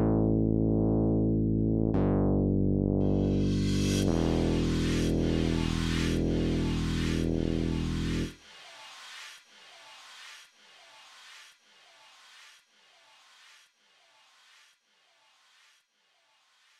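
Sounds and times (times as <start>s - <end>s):
bass: 0.0s - 8.4s
drums: 3.2s - 13.6s.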